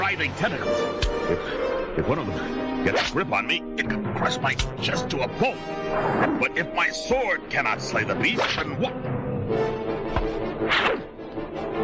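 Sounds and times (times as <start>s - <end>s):
speech: 0.1s - 10.0s
monster's tentacle striking a cracked age-rutted stone pillar: 10.1s - 10.5s.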